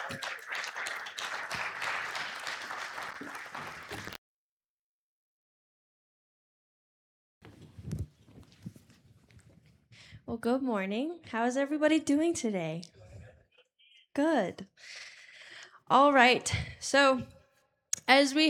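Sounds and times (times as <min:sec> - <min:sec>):
church congregation applause welcoming a speaker before a sermon: 0:00.0 - 0:04.2
speech: 0:00.1 - 0:00.4, 0:10.3 - 0:13.0, 0:14.2 - 0:15.1, 0:15.9 - 0:17.4, 0:18.1 - 0:18.4.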